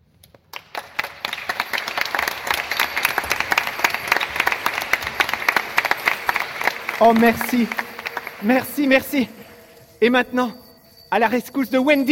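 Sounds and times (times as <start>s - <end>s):
audience applause: 0.5s - 9.8s
speech: 7.0s - 7.8s, 8.4s - 9.4s, 10.0s - 12.1s.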